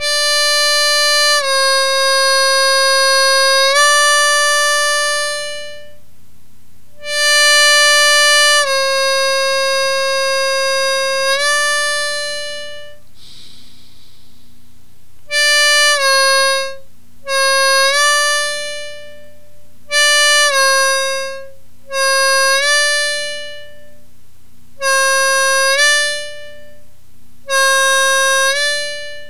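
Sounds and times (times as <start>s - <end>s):
harmonica note bending: 0.0s - 6.0s, 7.0s - 13.7s, 15.3s - 24.0s, 24.8s - 26.8s, 27.5s - 29.2s.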